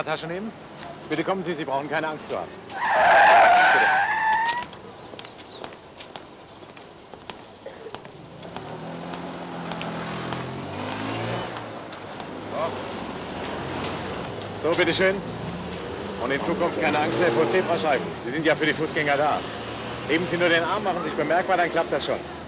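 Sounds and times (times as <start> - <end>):
speech: 0.0 - 4.6, 14.6 - 15.3, 16.2 - 22.4
car traffic passing: 0.0 - 22.4
car tyres screeching: 2.6 - 5.4.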